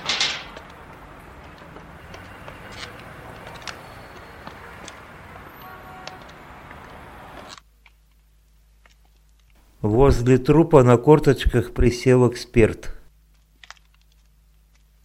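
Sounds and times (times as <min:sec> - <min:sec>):
heavy iron door opening with a clank: 0:00.0 - 0:00.9
footsteps of people descending steps: 0:00.0 - 0:07.6
speech: 0:09.8 - 0:13.0.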